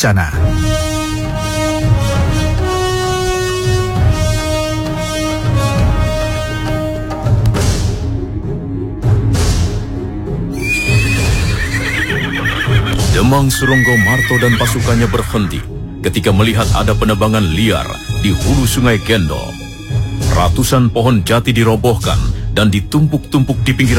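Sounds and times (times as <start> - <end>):
speech: 0.0 - 0.7, 13.2 - 19.6, 20.4 - 23.9
loud sustained music: 0.0 - 23.9
horse whinnying: 10.5 - 15.7.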